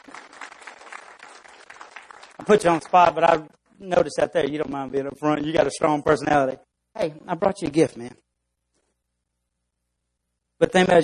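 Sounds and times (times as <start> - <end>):
audience applauding a visitor: 0.0 - 3.3
speech: 2.5 - 8.2, 10.6 - 11.0.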